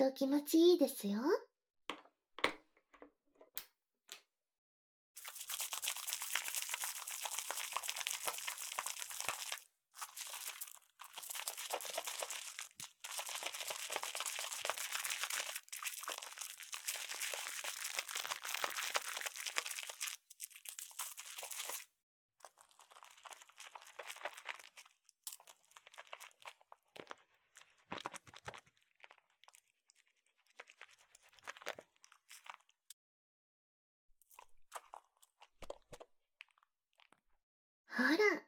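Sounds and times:
speech: 0.0 - 1.5
shampoo lather being worked into hair: 5.2 - 32.9, 34.3 - 37.3.

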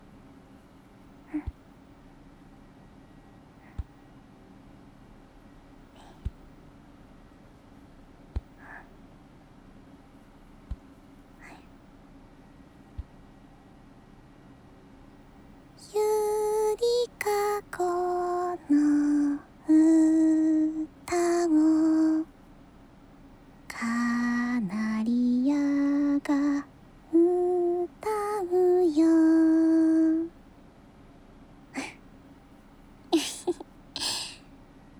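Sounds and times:
person singing a lullaby: 1.2 - 1.6, 15.8 - 22.3, 23.7 - 30.4, 31.8 - 32.0, 33.2 - 34.4.

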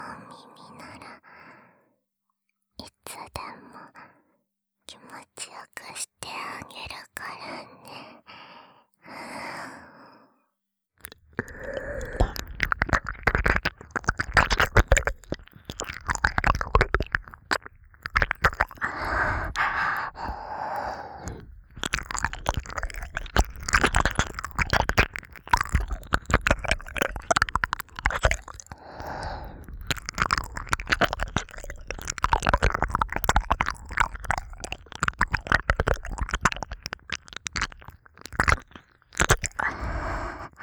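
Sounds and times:
ASMR ear licking sounds: 11.0 - 40.6.

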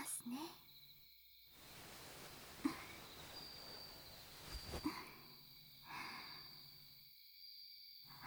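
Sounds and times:
ear licking: 1.6 - 5.1.

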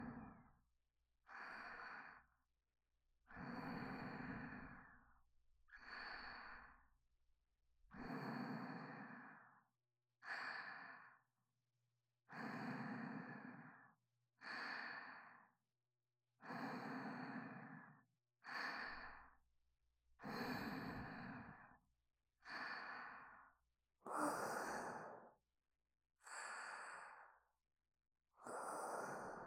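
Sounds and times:
person breathing in sleep: 1.3 - 2.4, 3.3 - 7.0, 7.9 - 11.3, 12.3 - 15.6, 16.4 - 19.4, 20.2 - 21.8, 22.4 - 25.4, 26.2 - 27.6, 28.4 - 29.4.

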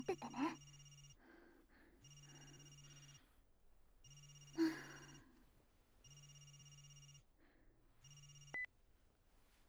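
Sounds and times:
telephone ringing: 0.0 - 1.2, 2.0 - 3.2, 4.0 - 5.3, 6.0 - 7.3, 8.0 - 8.7.

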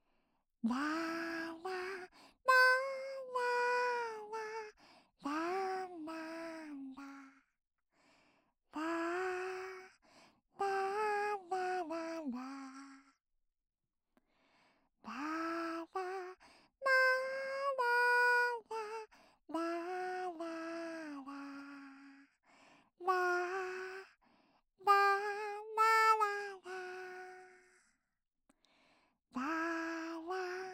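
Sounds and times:
lullaby without reverb: 0.7 - 7.5, 8.8 - 10.0, 10.6 - 13.2, 15.1 - 22.4, 23.0 - 24.2, 24.8 - 28.0, 29.4 - 30.7.

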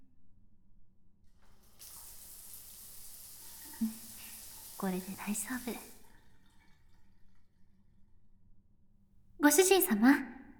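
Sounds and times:
shower water running: 1.2 - 7.6
speech: 4.8 - 5.9, 9.9 - 10.3.

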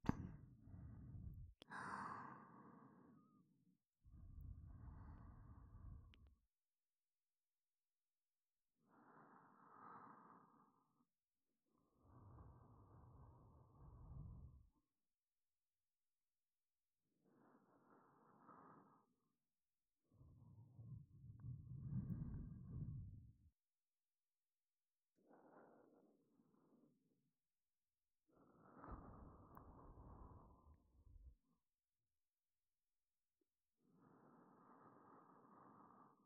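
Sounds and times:
breathing in the left ear: 0.4 - 3.5, 4.1 - 6.3, 8.8 - 11.1, 11.8 - 14.9, 17.2 - 19.3, 20.1 - 23.5, 25.2 - 26.9, 28.3 - 31.4, 33.8 - 36.2.

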